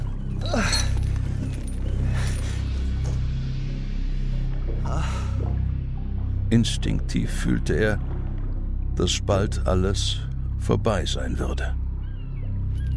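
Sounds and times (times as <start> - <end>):
low rumbling drone: 0.0 - 12.9
metal chain clinking: 0.4 - 2.7
speech: 6.5 - 8.1, 9.0 - 11.8.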